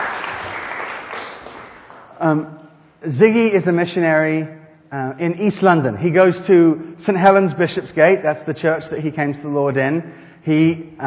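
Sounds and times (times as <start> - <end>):
audience applause for a missionary at a church gathering: 0.0 - 2.2
speech: 2.2 - 11.0.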